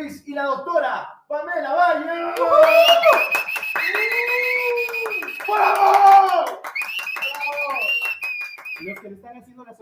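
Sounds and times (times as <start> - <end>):
speech: 0.0 - 4.2
applause: 2.4 - 9.1.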